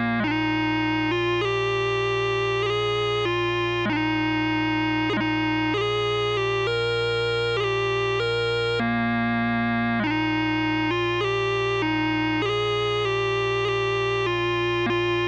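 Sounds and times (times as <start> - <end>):
bagpipes playing: 0.2 - 8.9, 10.0 - 15.2.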